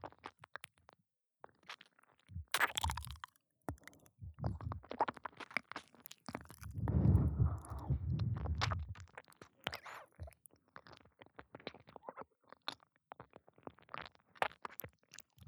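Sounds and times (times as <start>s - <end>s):
gentle ear licking on the right side for ASMR: 2.6s - 14.8s.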